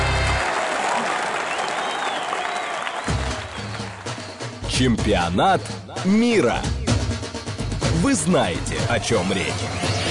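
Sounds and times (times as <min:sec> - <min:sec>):
audience applause from a large audience: 0:00.0 - 0:04.6
speech: 0:04.8 - 0:06.8, 0:08.0 - 0:10.0.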